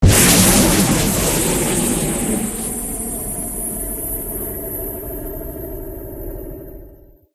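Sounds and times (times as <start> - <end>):
missile: 0.0 - 5.4.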